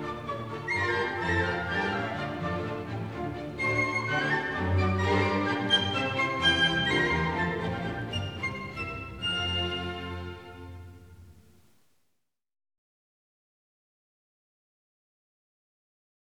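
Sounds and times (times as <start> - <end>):
orchestral suite hornpipe: 0.0 - 11.4.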